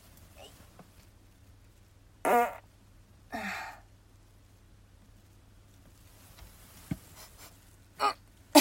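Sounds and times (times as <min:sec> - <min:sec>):
farts: 0:02.2 - 0:02.6.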